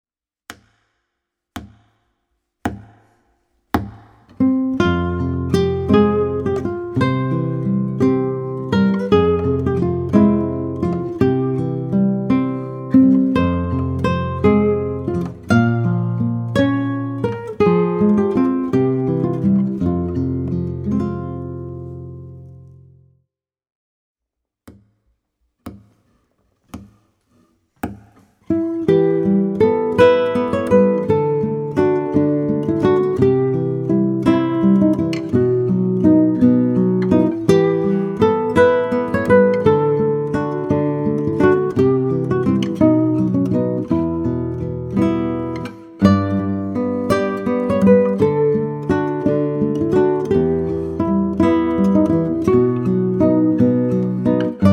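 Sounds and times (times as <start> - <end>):
guitar: 4.2 - 23.2, 27.8 - 54.7.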